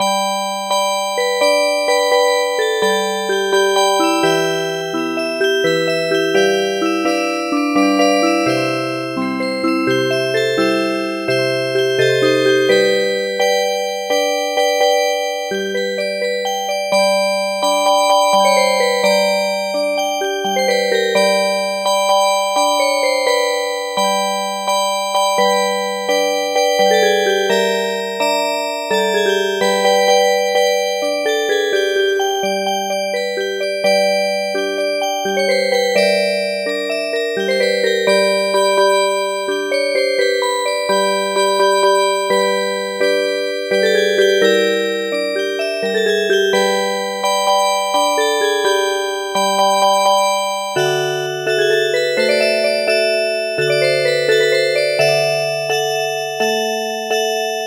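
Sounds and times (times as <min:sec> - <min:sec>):
MIDI music box melody: 0:00.0 - 0:57.6.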